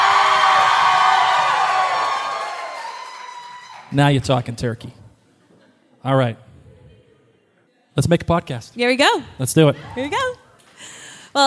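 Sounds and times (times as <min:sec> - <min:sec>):
live audience cheering at a finale party in the Colony House in Newport, Rhode Island: 0:00.0 - 0:04.0
speech: 0:03.9 - 0:05.0, 0:06.0 - 0:06.4, 0:08.0 - 0:10.4.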